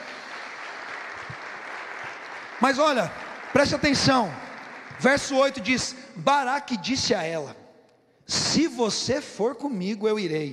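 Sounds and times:
congregation applauding during a church service: 0:00.0 - 0:07.2
speech: 0:02.6 - 0:04.4, 0:05.0 - 0:07.6, 0:08.3 - 0:10.5.

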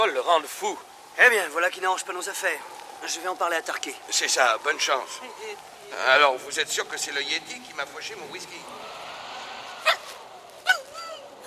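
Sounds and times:
speech: 0:00.0 - 0:09.0
dog barking: 0:09.8 - 0:10.1.

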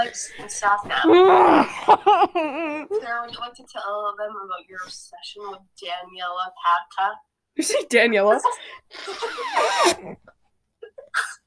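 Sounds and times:
speech: 0:00.1 - 0:10.4, 0:11.1 - 0:11.4
laughter: 0:01.5 - 0:02.9
person blowing nose into pajama pants: 0:08.9 - 0:10.2.

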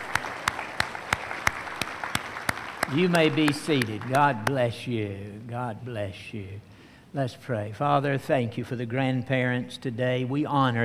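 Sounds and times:
audience applauding the grandparents: 0:00.0 - 0:04.5
speech: 0:02.9 - 0:10.8.

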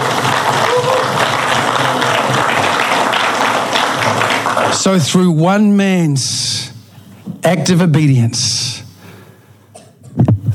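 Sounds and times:
audience clapping: 0:00.0 - 0:05.2
speech: 0:04.8 - 0:06.5, 0:07.4 - 0:08.6.

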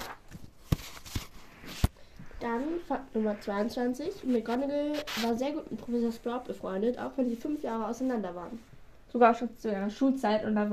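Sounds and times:
page being turned: 0:00.0 - 0:02.0, 0:04.2 - 0:05.9
speech: 0:02.4 - 0:10.7.

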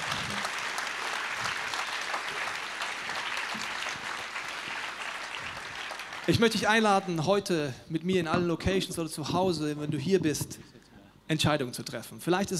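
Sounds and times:
audience applause: 0:00.0 - 0:06.8
speech: 0:06.3 - 0:12.5.

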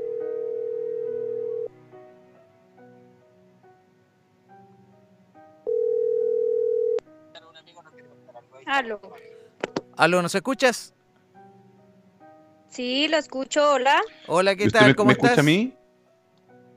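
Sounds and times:
outgoing phone call tone beeps: 0:00.0 - 0:01.7, 0:05.7 - 0:07.0
faint music: 0:00.0 - 0:16.7
speech: 0:08.7 - 0:09.3, 0:10.0 - 0:11.0, 0:12.7 - 0:15.8
laughter: 0:14.6 - 0:15.6.

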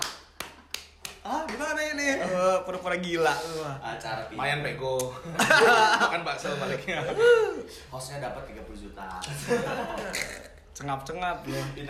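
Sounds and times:
hand clap: 0:00.0 - 0:01.8
speech: 0:01.2 - 0:11.8
laughter: 0:05.2 - 0:07.6, 0:09.3 - 0:10.5.

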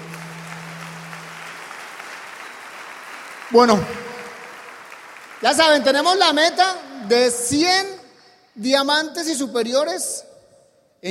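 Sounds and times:
low hum: 0:00.0 - 0:01.8
audience applause of welcome: 0:00.0 - 0:08.0
speech: 0:03.5 - 0:04.1, 0:05.4 - 0:08.0, 0:08.6 - 0:10.3.

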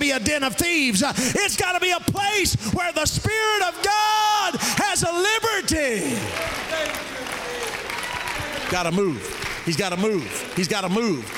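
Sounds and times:
speech: 0:00.2 - 0:07.3, 0:08.7 - 0:11.3
chaplain standing clapping his hands: 0:06.2 - 0:11.3.

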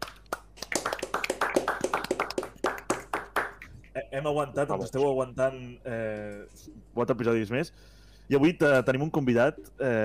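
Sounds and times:
small group clapping: 0:00.0 - 0:03.8
speech: 0:04.0 - 0:10.0.

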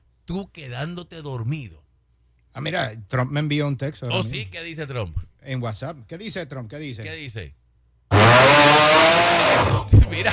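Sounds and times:
speech: 0:00.3 - 0:01.8, 0:02.5 - 0:07.6, 0:08.3 - 0:10.3
loud harsh snoring: 0:08.1 - 0:09.9.

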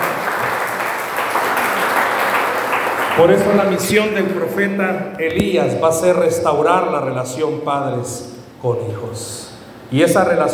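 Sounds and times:
audience applause: 0:00.0 - 0:03.9
speech: 0:03.2 - 0:10.5.

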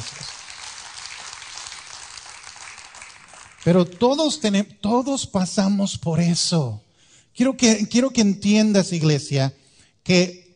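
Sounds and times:
crowd applause: 0:00.0 - 0:04.4
speech: 0:03.6 - 0:10.4.

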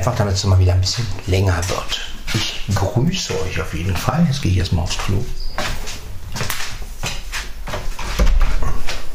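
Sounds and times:
speech: 0:00.0 - 0:05.8
door being closed: 0:08.0 - 0:09.0.

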